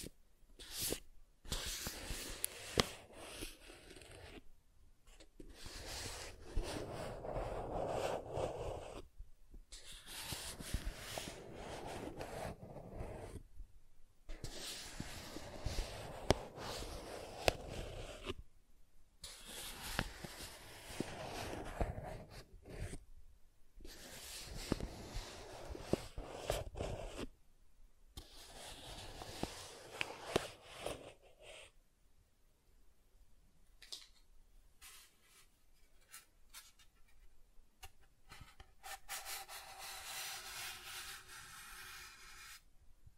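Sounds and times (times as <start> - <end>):
soft tracing strokes on surfaces: 0.6 - 4.4, 5.6 - 9.0, 10.0 - 13.4, 14.4 - 18.4, 19.2 - 23.0, 23.9 - 27.2, 28.2 - 31.2, 38.8 - 42.6.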